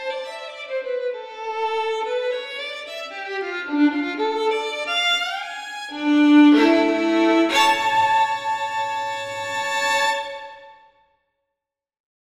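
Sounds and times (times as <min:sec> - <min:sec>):
solo violin piece: 0:00.0 - 0:10.9.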